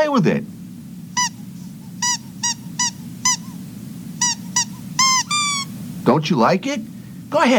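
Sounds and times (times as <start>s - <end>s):
speech: 0.2s - 0.6s, 6.1s - 7.5s
squeaky toy mouse squeaking: 1.2s - 3.6s, 4.2s - 5.7s.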